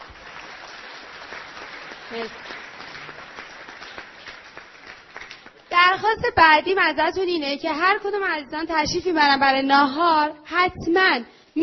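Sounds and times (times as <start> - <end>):
audience applauding: 0.0 - 5.7
speech: 2.1 - 2.6, 6.0 - 11.6.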